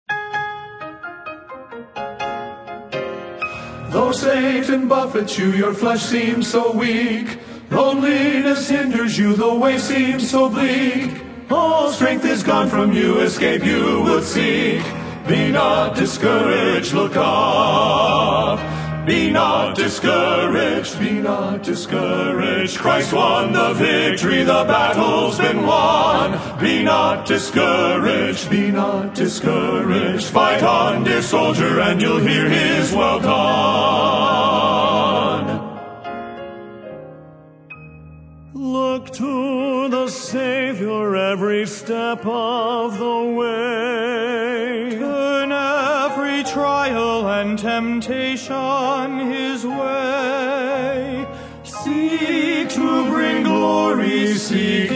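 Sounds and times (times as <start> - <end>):
male vocal quartet: 3.5 - 35.8, 38.6 - 54.9.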